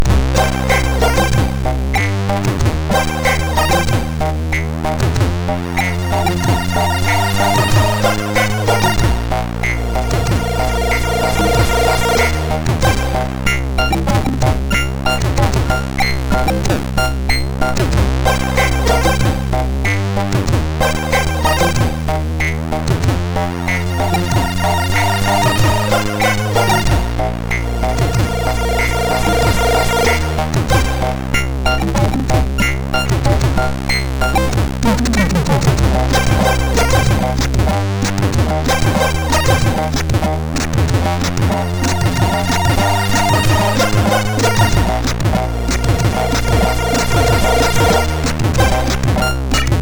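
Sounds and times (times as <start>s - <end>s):
old music on MOS6581R2 sound chip: 0.0s - 49.7s.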